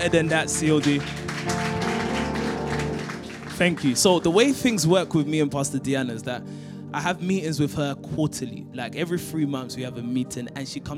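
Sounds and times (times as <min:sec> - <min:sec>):
speech: 0:00.0 - 0:01.7, 0:03.6 - 0:10.9
audience applause: 0:00.0 - 0:05.0.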